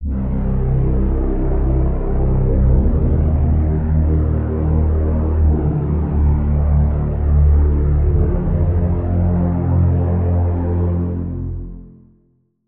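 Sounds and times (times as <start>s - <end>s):
synth pad: 0.0s - 11.8s.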